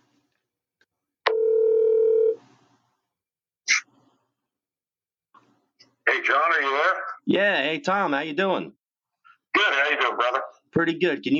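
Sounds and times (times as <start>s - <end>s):
telephone dial tone: 1.3s - 2.4s
speech: 6.2s - 8.8s, 9.5s - 11.3s.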